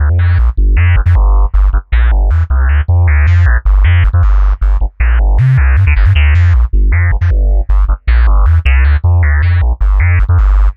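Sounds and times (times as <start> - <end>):
synth bass: 0.0 - 10.7.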